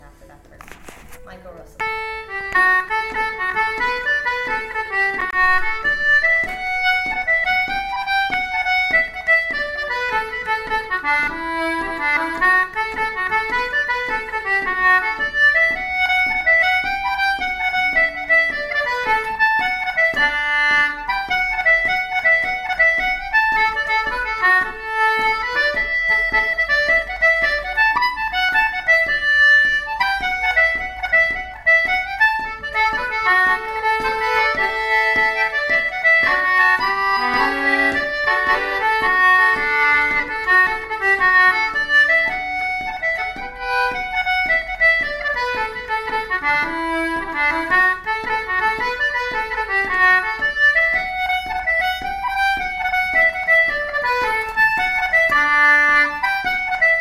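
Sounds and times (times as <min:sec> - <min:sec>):
jig tune: 0:00.0 - 0:57.0.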